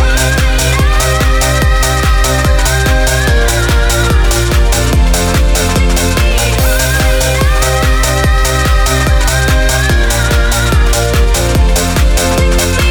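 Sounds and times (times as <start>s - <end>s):
piano mix: 0.0s - 12.8s.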